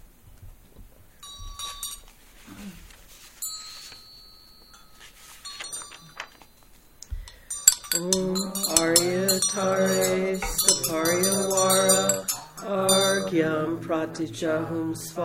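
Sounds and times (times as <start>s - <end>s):
faint rustling: 0.4s - 13.3s
vajra bell ringing: 1.2s - 2.1s, 3.4s - 13.4s
speech: 13.4s - 15.2s.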